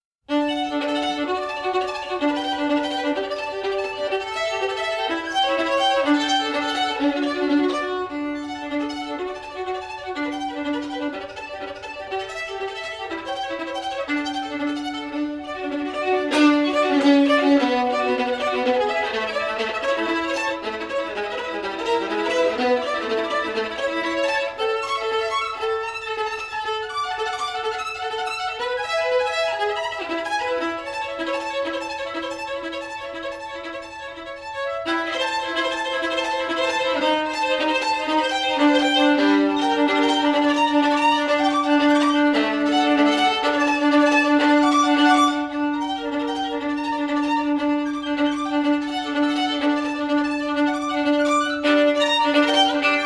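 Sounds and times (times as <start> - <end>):
classical caprice: 0.0 - 53.0.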